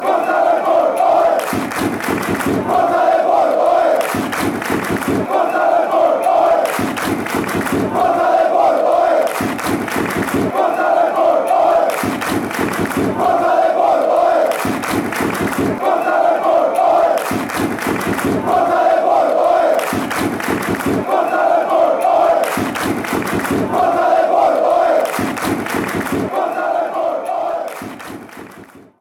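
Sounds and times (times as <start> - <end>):
crowd chanting: 0.0 - 28.9.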